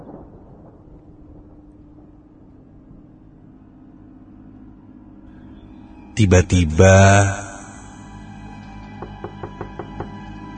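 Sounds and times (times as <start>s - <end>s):
steady low hum: 0.0s - 10.5s
speech: 6.2s - 7.4s
knocking on a door: 9.0s - 10.3s.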